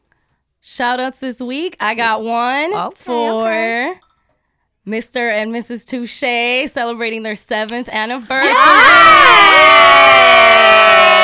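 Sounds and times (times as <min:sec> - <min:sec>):
speech: 0:00.6 - 0:04.0, 0:04.8 - 0:10.4
people clapping: 0:08.5 - 0:11.2.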